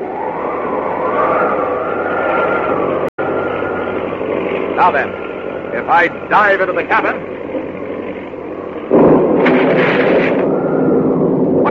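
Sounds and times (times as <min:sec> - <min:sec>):
roaring crackling rumble: 0:00.0 - 0:11.7
speech: 0:04.8 - 0:07.3
lightning strike crash: 0:08.9 - 0:11.7.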